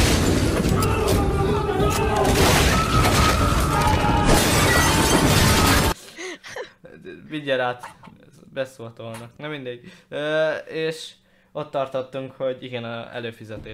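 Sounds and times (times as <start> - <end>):
door being broken in by police: 0.0 - 6.0
speech: 7.4 - 13.7.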